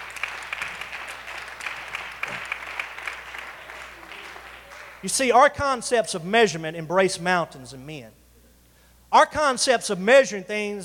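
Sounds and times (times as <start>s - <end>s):
audience clapping hands: 0.0s - 5.2s
speech: 5.0s - 8.2s, 9.2s - 10.8s.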